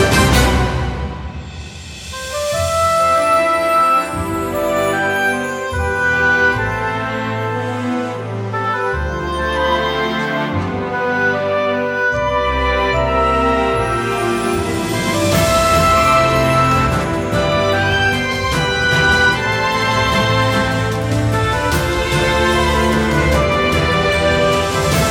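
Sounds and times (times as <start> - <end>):
orchestral background music: 0.0 - 25.0.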